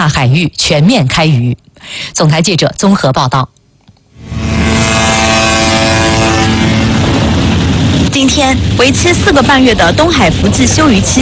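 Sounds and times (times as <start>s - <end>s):
speech: 0.0s - 3.6s, 8.2s - 11.2s
fishing boats sounding horns while setting sail: 4.2s - 8.1s.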